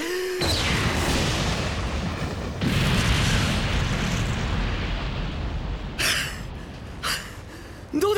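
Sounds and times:
massive lightning strike explosion: 0:00.4 - 0:06.8.

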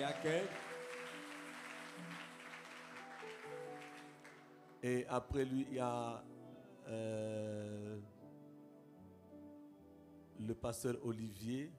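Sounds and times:
speech: 0:00.0 - 0:00.7, 0:04.8 - 0:08.2, 0:10.4 - 0:11.7
church congregation applauding a visiting guest at a Sunday service: 0:00.0 - 0:04.9.

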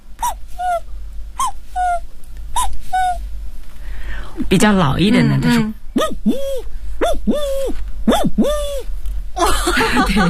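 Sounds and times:
voice imitating a young cuckoo's call: 0:00.2 - 0:03.2, 0:06.0 - 0:08.9
speech: 0:04.5 - 0:06.5, 0:07.2 - 0:10.2
laughter: 0:09.4 - 0:10.2.

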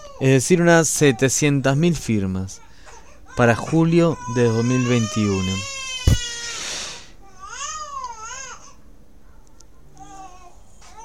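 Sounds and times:
speech: 0:00.2 - 0:02.6, 0:03.4 - 0:05.7
baby crying: 0:02.6 - 0:09.4, 0:10.0 - 0:11.0.

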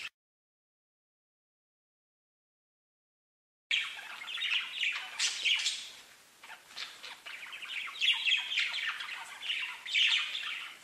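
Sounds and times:
budgerigar chattering warbles, chirps and squawks: 0:03.7 - 0:10.8.

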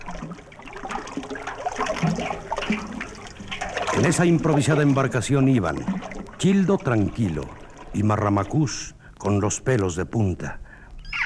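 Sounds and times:
rushing water of a suddenly risen river flooding houses: 0:00.0 - 0:08.9
speech: 0:04.0 - 0:10.6.

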